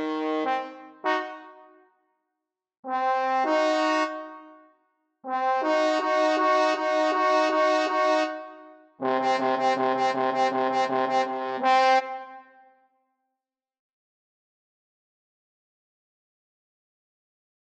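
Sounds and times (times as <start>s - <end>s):
trombone trio playing: 0.0s - 1.4s, 2.9s - 4.2s, 5.3s - 8.4s, 9.0s - 12.3s.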